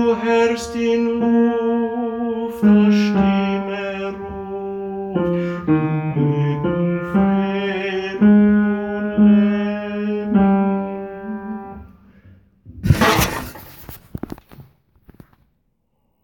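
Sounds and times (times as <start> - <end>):
tenor singing: 0.0 - 11.9.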